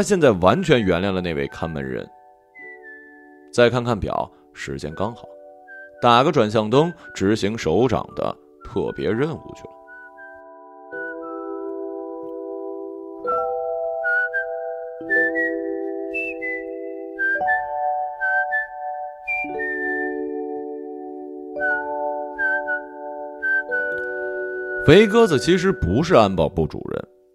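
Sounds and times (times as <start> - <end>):
speech: 0.0 - 2.2, 3.5 - 5.3, 6.0 - 9.8, 24.9 - 27.1
person whistling a lively melodic tune: 2.6 - 3.5, 5.6 - 6.1, 6.9 - 7.5, 8.1 - 11.7, 13.3 - 20.7, 21.6 - 26.2.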